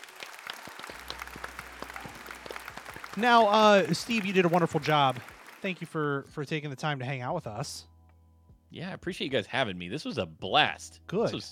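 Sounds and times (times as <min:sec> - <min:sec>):
hosts clapping: 0:00.0 - 0:06.6
speech: 0:03.2 - 0:07.9, 0:08.7 - 0:11.5.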